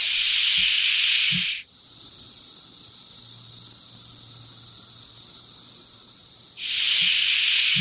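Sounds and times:
smaller cicada species Cassini calling: 0.0 - 7.7.

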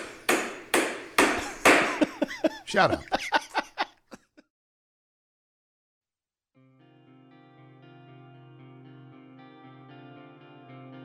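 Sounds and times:
hammering: 0.0 - 3.6
laughter: 1.4 - 4.4
speech: 2.7 - 3.4.

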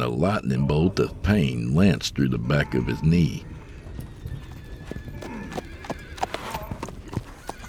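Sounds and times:
speech: 0.0 - 3.5
horse whinnying: 2.4 - 7.6
several horses galloping: 3.4 - 7.6.

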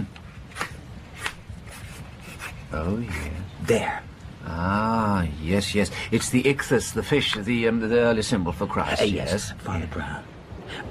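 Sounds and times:
low hum: 0.0 - 10.9
pencil scratching on paper while drawing a fish symbol: 1.2 - 3.3
speech: 2.7 - 10.9.

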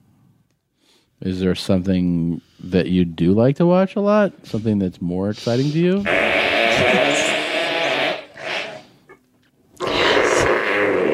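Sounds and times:
speech: 1.2 - 6.9
farting on a pie: 6.0 - 9.0, 9.8 - 11.1.

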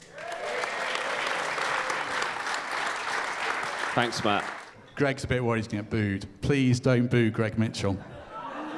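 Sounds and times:
audience round of applause: 0.0 - 4.7
speech: 4.0 - 8.1.

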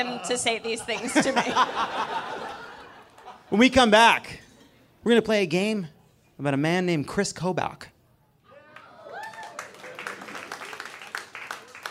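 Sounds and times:
speech: 0.0 - 2.6, 3.5 - 4.4, 5.0 - 7.9
laughter: 0.0 - 3.7
tepid audience applause: 8.7 - 11.8.

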